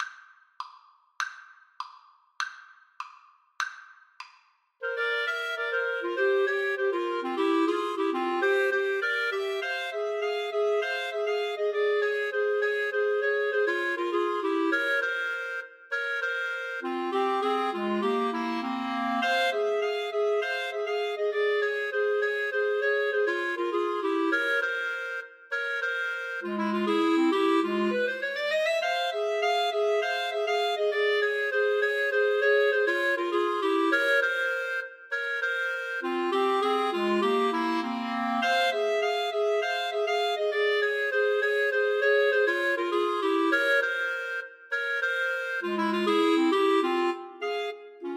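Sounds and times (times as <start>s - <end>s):
clarinet trio: 4.8s - 48.1s.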